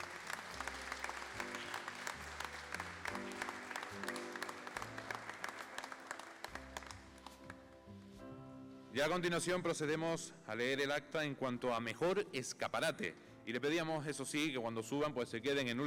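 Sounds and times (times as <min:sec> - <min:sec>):
audience applause: 0:00.0 - 0:07.5
speech: 0:09.0 - 0:15.8.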